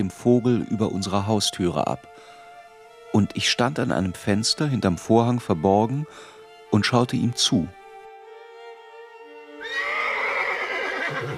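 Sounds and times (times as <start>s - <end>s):
speech: 0.0s - 2.3s, 3.1s - 7.8s, 11.2s - 11.3s
fallen horse harnessed to a farm wagon whinnying and snorting: 9.6s - 11.3s.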